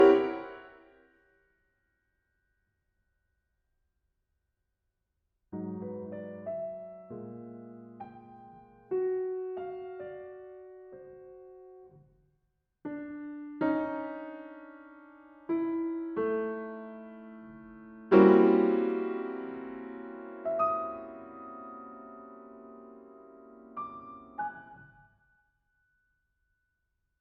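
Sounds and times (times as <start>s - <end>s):
andante piano piece: 0.0s - 1.0s, 5.6s - 12.1s, 12.9s - 25.2s.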